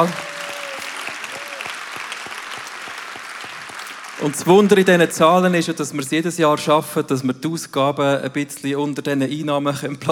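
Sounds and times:
speech: 0:00.0 - 0:00.3, 0:04.2 - 0:10.1
crowd applause: 0:00.0 - 0:05.2.

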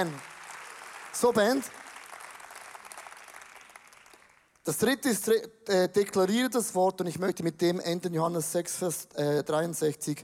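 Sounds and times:
speech: 0:00.0 - 0:00.3, 0:01.2 - 0:01.8, 0:04.7 - 0:10.2
audience applause: 0:00.0 - 0:04.6.

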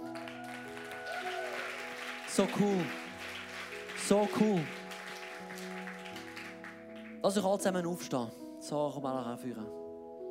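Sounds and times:
applause: 0:00.0 - 0:07.5
speech: 0:02.4 - 0:03.0, 0:04.1 - 0:04.8, 0:07.2 - 0:09.8.

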